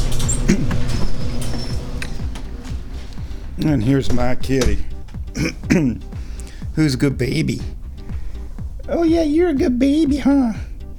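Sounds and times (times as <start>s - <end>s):
garage door closing: 0.0s - 5.4s
speech: 3.6s - 6.1s, 6.8s - 7.8s, 8.9s - 10.7s.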